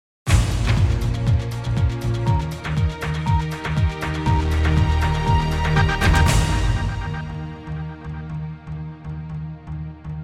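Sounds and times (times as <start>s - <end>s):
news sting: 0.3s - 8.3s.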